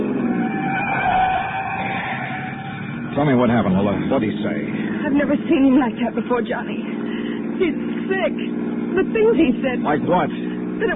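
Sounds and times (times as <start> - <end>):
skidding tyres on a twisting steep mountain road: 0.0 - 3.1
car engine speeding up a twisting steep mountain road: 0.0 - 10.9
speech: 3.3 - 6.9, 7.6 - 10.9.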